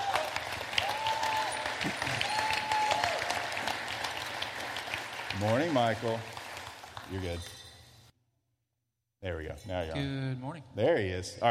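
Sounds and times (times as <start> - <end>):
church audience clapping: 0.0 - 7.5
speech: 5.4 - 6.4, 7.1 - 7.6, 9.2 - 11.4.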